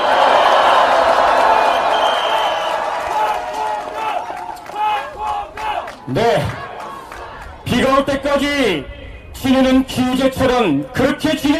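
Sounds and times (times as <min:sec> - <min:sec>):
audience applause at a rally: 0:00.0 - 0:07.6
speech: 0:08.0 - 0:11.5.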